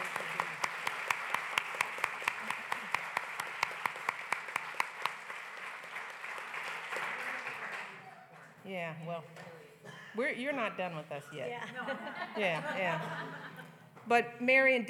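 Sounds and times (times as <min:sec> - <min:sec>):
audience applause: 0:00.0 - 0:08.5
speech: 0:08.7 - 0:13.5, 0:14.1 - 0:14.8
laughter: 0:11.4 - 0:13.9.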